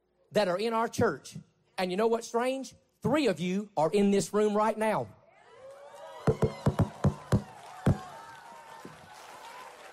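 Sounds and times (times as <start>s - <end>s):
speech: 0.3s - 5.2s
scattered audience hand claps: 6.3s - 9.9s.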